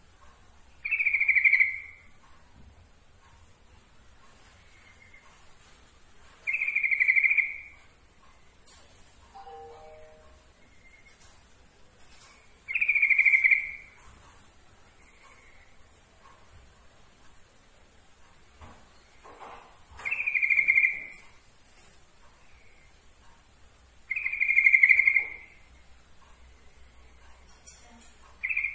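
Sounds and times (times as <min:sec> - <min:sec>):
yellow-vented bulbul giving bright notes: 0:00.8 - 0:02.1, 0:06.5 - 0:07.8, 0:12.7 - 0:14.0, 0:20.0 - 0:21.3, 0:24.1 - 0:25.7, 0:28.4 - 0:28.7.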